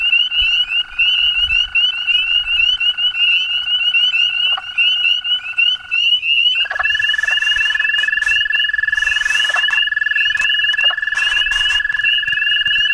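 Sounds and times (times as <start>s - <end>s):
peepers calling: 0.0s - 12.9s.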